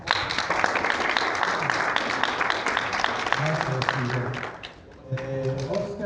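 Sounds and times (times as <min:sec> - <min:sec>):
crowd applauding: 0:00.0 - 0:05.9
speech: 0:04.0 - 0:04.4.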